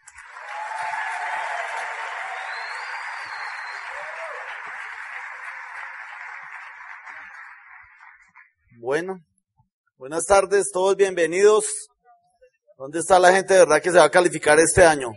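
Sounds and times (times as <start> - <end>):
audience applause: 0.0 - 8.4
faint whistles or cheers: 0.2 - 7.6
speech: 8.8 - 9.3, 10.0 - 11.9, 12.8 - 15.1.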